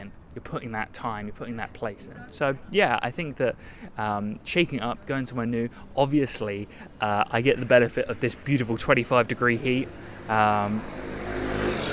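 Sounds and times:
traffic noise: 0.0 - 11.9
speech: 0.4 - 11.2
motorbikes passing: 6.6 - 11.9.

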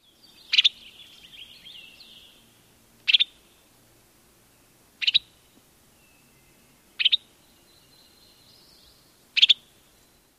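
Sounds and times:
faint thin birdsong twittering: 0.0 - 10.3.

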